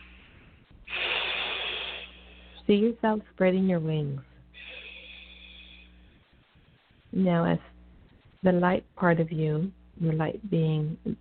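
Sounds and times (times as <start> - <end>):
deep breath during a guided meditation: 0.0 - 2.6, 4.5 - 6.4
speech: 2.7 - 4.3, 7.2 - 7.7, 8.4 - 11.1.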